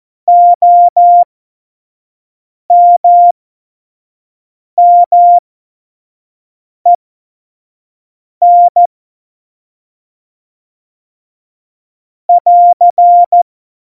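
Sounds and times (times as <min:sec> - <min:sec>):
Morse code beeps for a Morse course: 0:00.3 - 0:01.2, 0:02.7 - 0:03.3, 0:04.8 - 0:05.4, 0:08.4 - 0:08.9, 0:12.3 - 0:13.4.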